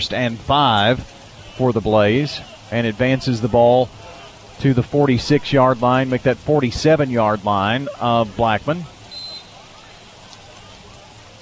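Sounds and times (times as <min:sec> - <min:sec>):
speech: 0:00.0 - 0:09.0
rain falling on aluminum bleachers: 0:00.0 - 0:11.4.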